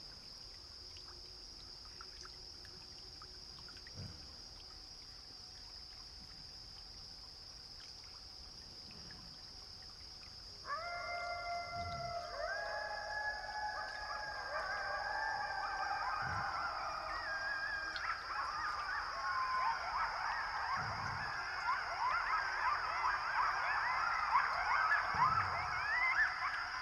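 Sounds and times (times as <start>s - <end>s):
coyotes howling and yipping in Pipestone Canyon, Eastern Washington: 10.4s - 26.8s.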